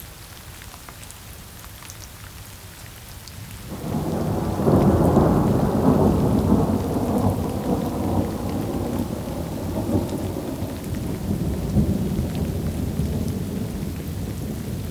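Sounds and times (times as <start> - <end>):
steady rain downpour: 0.0 - 14.8
thunder: 3.7 - 14.8.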